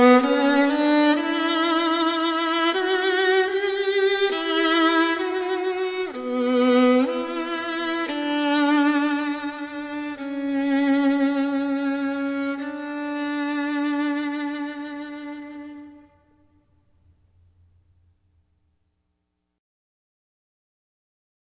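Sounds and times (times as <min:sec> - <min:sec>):
violin: 0:00.0 - 0:17.0.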